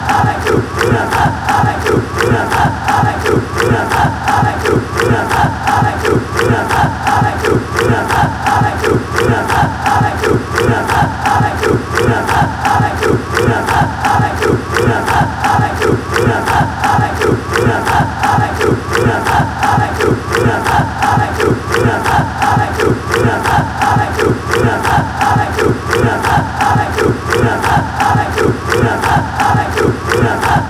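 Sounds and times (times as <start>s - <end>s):
fans chanting: 0.0s - 30.6s.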